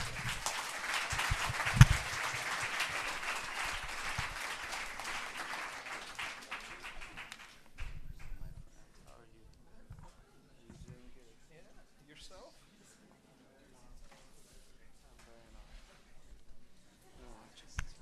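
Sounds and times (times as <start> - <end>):
audience applauding: 0.0 - 8.0.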